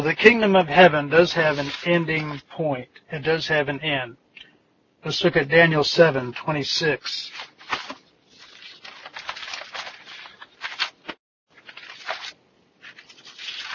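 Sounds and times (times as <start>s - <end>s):
speech: 0.0s - 4.2s, 5.0s - 7.8s
pages shuffling: 1.4s - 2.4s, 7.2s - 13.7s.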